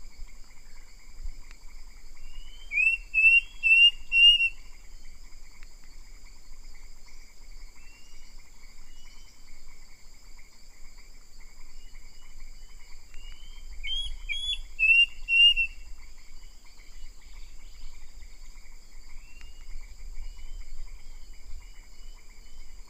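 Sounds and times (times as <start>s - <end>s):
bird whistled calls: 2.2s - 4.6s, 13.2s - 15.8s.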